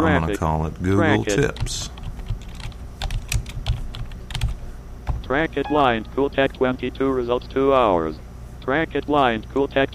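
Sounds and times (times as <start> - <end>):
speech: 0.0 - 2.0, 5.3 - 9.9
typing keywords on a computer keyboard: 1.6 - 4.6.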